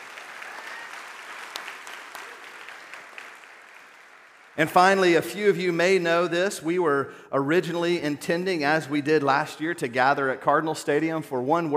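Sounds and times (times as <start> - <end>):
audience applause: 0.0 - 5.0
speech: 4.6 - 11.7.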